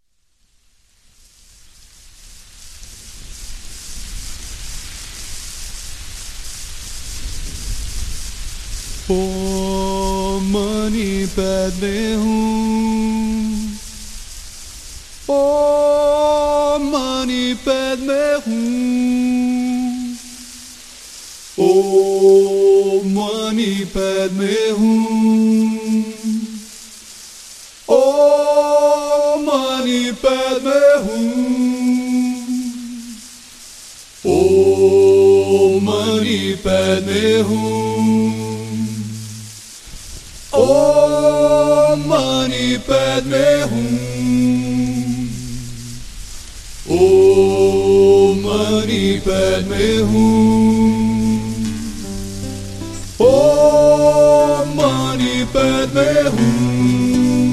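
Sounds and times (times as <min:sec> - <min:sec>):
Tibetan mantra chanting: 0:09.0 - 0:14.1, 0:15.3 - 0:20.6, 0:21.6 - 0:26.8, 0:27.8 - 0:33.3, 0:34.2 - 0:39.6, 0:40.6 - 0:46.2, 0:46.9 - 0:57.5.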